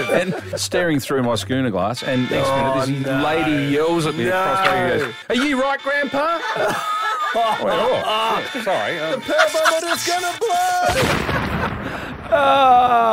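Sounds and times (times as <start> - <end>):
laughter: 0.0 - 0.8, 2.1 - 13.1
speech: 0.0 - 11.7, 12.3 - 13.1
explosion sound effect: 10.9 - 12.4.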